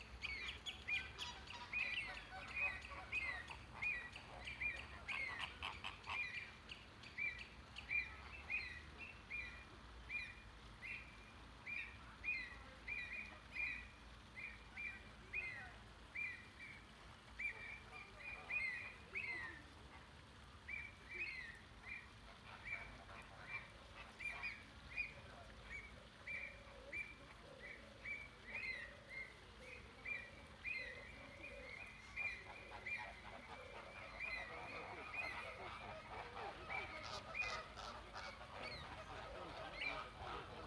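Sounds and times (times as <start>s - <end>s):
faint background hiss: 0.0s - 40.6s
flamingos honking: 22.2s - 25.1s, 31.4s - 40.6s.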